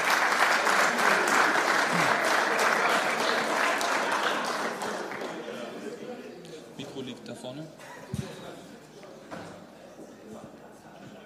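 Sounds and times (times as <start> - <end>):
audience applause: 0.0 - 5.8.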